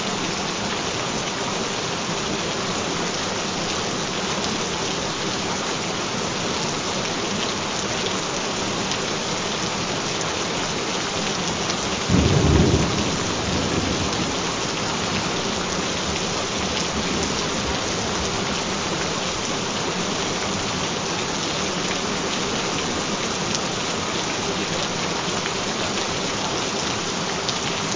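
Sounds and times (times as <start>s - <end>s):
gentle rain: 0.0s - 27.9s.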